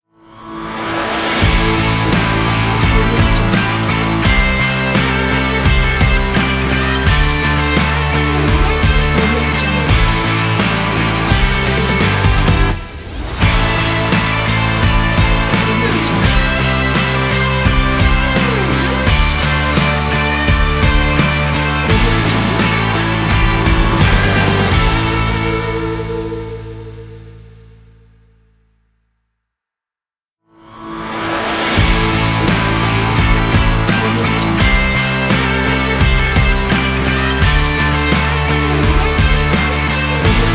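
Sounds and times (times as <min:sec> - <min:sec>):
motivational epic sports intro ident music: 0:00.4 - 0:26.2, 0:30.7 - 0:40.5.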